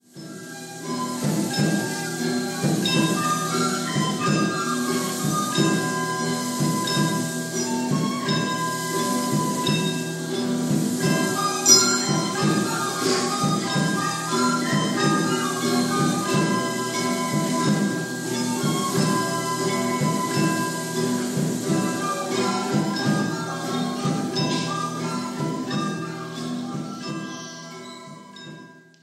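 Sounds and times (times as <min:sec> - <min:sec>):
short instrumental music: 0:00.0 - 0:29.0.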